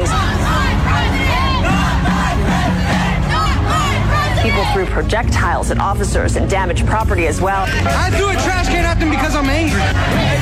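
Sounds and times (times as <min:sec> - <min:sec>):
angry crowd of protesters shouting: 0:00.0 - 0:05.0, 0:07.8 - 0:10.4
speech: 0:05.0 - 0:10.4.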